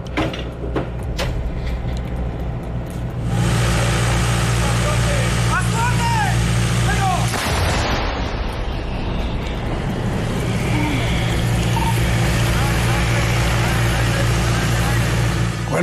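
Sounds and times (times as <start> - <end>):
steady low hum: 0.0 - 15.8
low rumbling roar: 1.4 - 15.8
155 mm howitzer firing in a medium field artillery exercise: 7.3 - 9.2.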